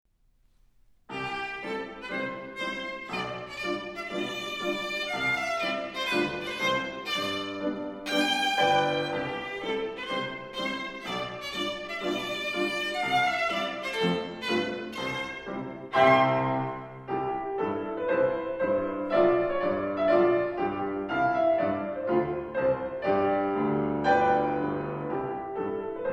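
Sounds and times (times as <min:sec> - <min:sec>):
viola and orchestra playing a sonata: 0:01.1 - 0:26.0.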